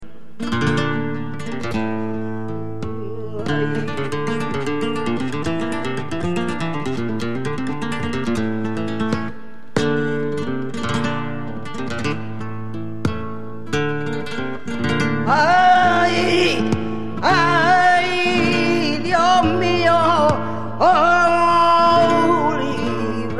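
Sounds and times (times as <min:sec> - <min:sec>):
flamenco music: 0:00.0 - 0:23.3.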